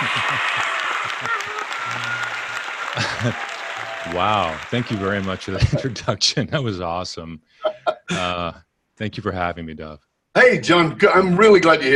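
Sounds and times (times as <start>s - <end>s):
audience clapping welcoming an author onstage: 0.0s - 6.1s
laughter: 0.0s - 6.6s, 7.6s - 8.6s
speech: 3.2s - 3.5s, 4.1s - 11.9s.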